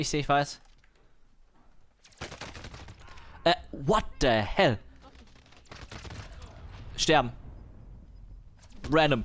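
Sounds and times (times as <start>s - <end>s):
speech: 0.0s - 0.7s, 3.4s - 4.9s, 7.0s - 7.4s, 8.9s - 9.2s
rapid gunfire in a video game firefight: 2.0s - 3.4s, 5.0s - 7.1s.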